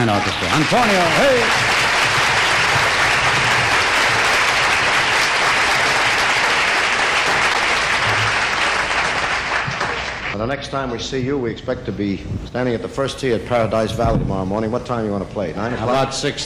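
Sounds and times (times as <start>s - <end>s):
speech: 0.0s - 1.9s, 10.4s - 16.4s
audience applause: 0.0s - 10.4s.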